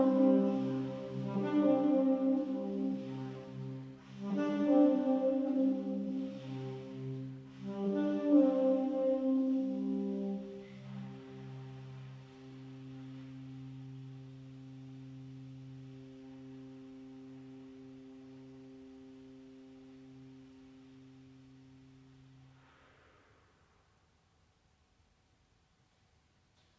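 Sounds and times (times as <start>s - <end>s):
saxophone: 0.0s - 23.1s.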